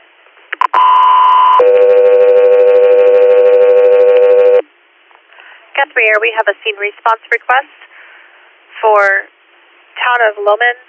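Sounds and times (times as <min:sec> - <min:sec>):
dispatch alert tones over a radio: 0:00.6 - 0:04.6
speech: 0:06.0 - 0:07.9, 0:08.8 - 0:09.3, 0:10.0 - 0:10.8.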